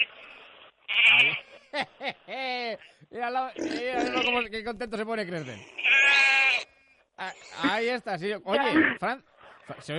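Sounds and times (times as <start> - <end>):
sheep bleating over the phone: 0.9 - 1.5, 3.6 - 4.5, 5.4 - 6.7
laughter: 1.4 - 2.8
speech: 1.7 - 5.8, 7.2 - 9.9.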